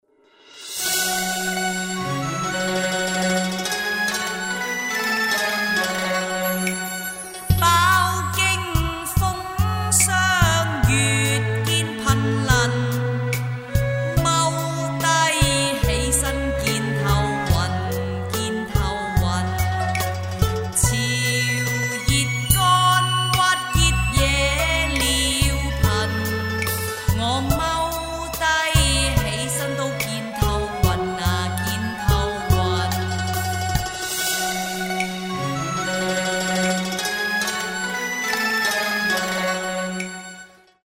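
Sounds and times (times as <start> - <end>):
song: 0.4 - 40.8.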